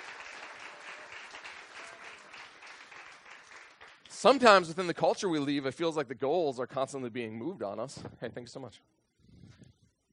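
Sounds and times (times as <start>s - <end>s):
audience applause: 0.0s - 4.7s
speech: 4.2s - 9.0s.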